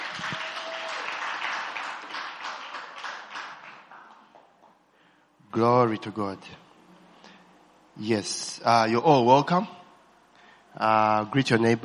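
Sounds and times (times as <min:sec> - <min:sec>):
audience applauding with hand claps: 0:00.0 - 0:04.8
speech: 0:05.6 - 0:06.6, 0:08.0 - 0:09.8, 0:10.8 - 0:11.8.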